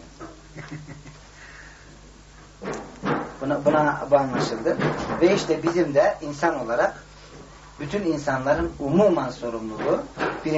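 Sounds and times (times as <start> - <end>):
speech: 0.7 - 1.0, 3.5 - 7.0, 7.8 - 10.5
door being closed: 2.6 - 5.8.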